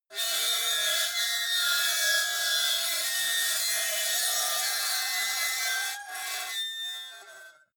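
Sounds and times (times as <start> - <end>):
metal lid screeching: 0.2 - 7.5.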